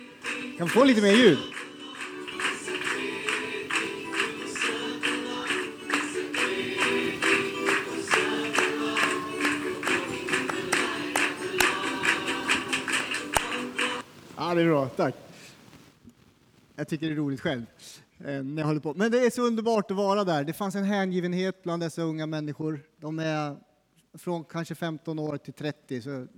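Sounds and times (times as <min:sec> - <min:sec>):
recorded rhythmic hand clapping: 0:00.0 - 0:14.5
speech: 0:00.6 - 0:01.5, 0:14.5 - 0:15.3, 0:16.8 - 0:26.3.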